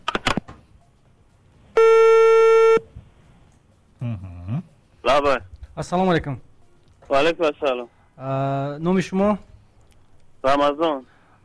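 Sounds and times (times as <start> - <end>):
telephone ringback tone: 1.8 - 2.8
speech: 5.1 - 6.5, 7.1 - 9.5, 10.4 - 11.4.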